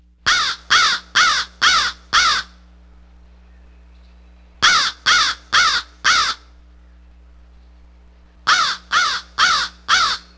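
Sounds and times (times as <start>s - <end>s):
crow: 0.3s - 2.5s, 4.6s - 6.5s, 8.5s - 10.3s.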